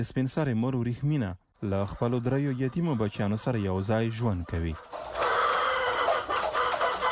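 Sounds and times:
speech: 0.0s - 5.2s
about a hundred chickens clucking in a mud-brick coop in a village courtyard: 1.5s - 7.0s.

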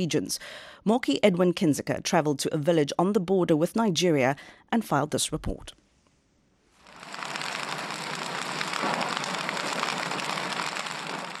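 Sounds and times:
speech: 0.0s - 5.8s
campfire burning: 6.8s - 11.3s.

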